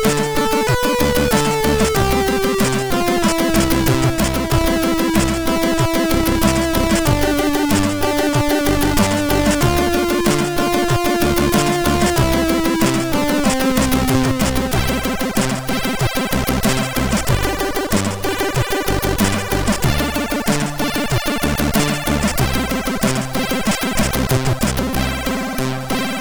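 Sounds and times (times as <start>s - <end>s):
chiptune saxophone music on MOS6581R3 sound chip: 0.0s - 26.1s.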